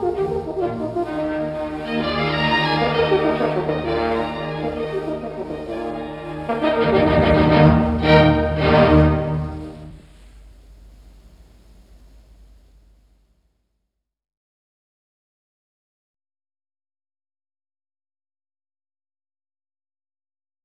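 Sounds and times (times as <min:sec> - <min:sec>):
classical horn concerto: 0:00.0 - 0:12.3.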